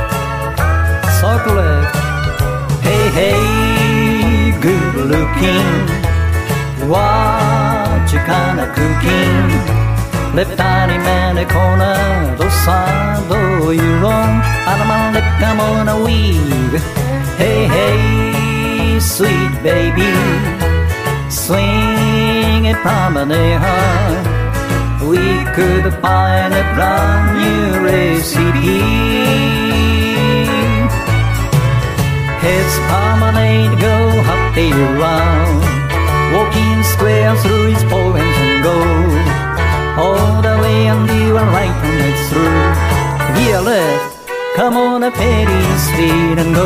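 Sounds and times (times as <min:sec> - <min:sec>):
vocals: 0:00.2 - 0:31.4, 0:32.0 - 0:46.6.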